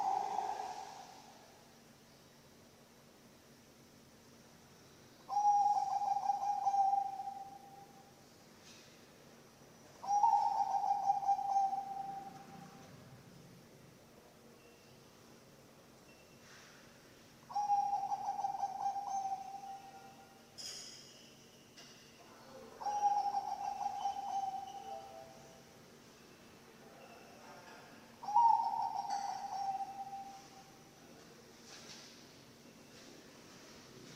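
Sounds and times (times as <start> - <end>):
zebra dove cooing: 0.0 - 1.4, 5.3 - 7.7, 10.0 - 12.8, 17.5 - 20.2, 22.8 - 25.4, 28.2 - 30.6.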